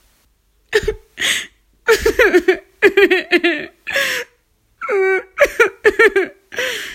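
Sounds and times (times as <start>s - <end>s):
person crying in sadness: 0.8s - 6.9s.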